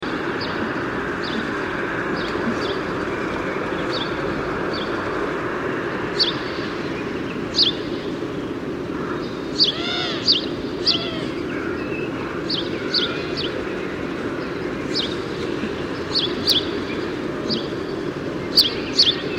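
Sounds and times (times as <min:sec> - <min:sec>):
traffic rumble: 0:00.1 - 0:19.3
another bird's curved calls: 0:09.5 - 0:12.1
house sparrow chirping: 0:09.6 - 0:11.6.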